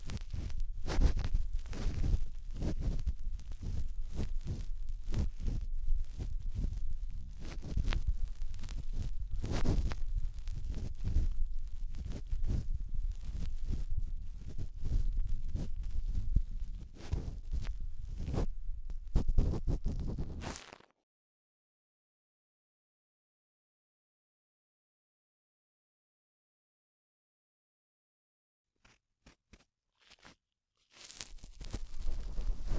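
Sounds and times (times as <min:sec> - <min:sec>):
cotton swab rubbing deep inside the right ear: 0:00.0 - 0:20.7, 0:30.9 - 0:32.7.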